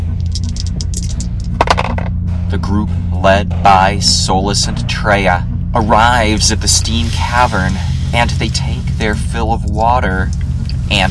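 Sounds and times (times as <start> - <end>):
dice rolling: 0.2 - 2.1
speech: 2.5 - 11.0.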